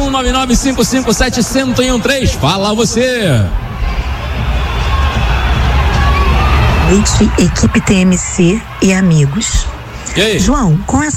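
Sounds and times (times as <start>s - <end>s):
speech: 0.1s - 4.0s, 6.9s - 11.1s
stadium crowd booing: 3.2s - 11.1s.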